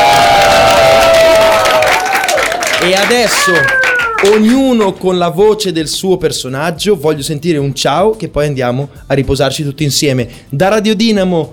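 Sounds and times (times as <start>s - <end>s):
cheering voices: 0.0s - 4.5s
audience applause: 0.0s - 4.9s
speech: 2.8s - 11.5s.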